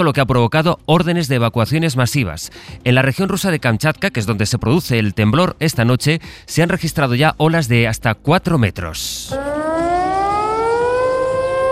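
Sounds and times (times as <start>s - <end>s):
speech: 0.0s - 9.8s
tsunami warning siren in Japan: 9.3s - 11.7s.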